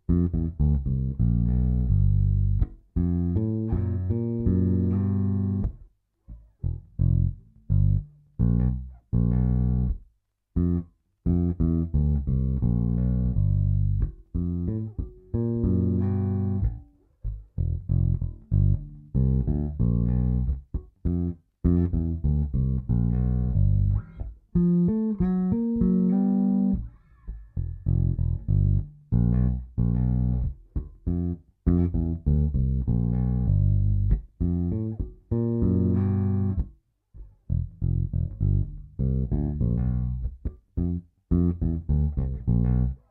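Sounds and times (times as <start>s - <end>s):
funk bass guitar played fingerstyle in G7: 0.0s - 43.0s.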